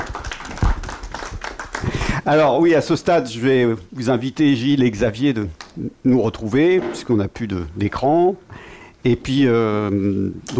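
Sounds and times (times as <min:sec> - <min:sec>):
audience applause: 0:00.0 - 0:02.0
speech: 0:02.3 - 0:10.5.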